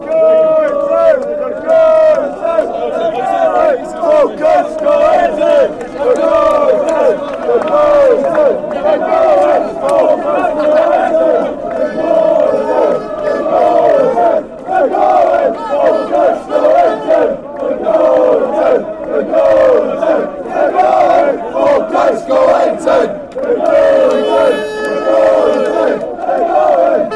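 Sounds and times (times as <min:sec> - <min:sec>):
football crowd chanting: 0:00.0 - 0:27.1.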